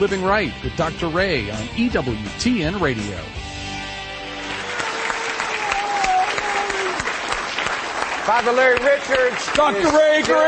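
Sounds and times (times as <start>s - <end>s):
speech: 0.0s - 3.5s, 8.3s - 10.4s
audience applause: 4.4s - 10.4s.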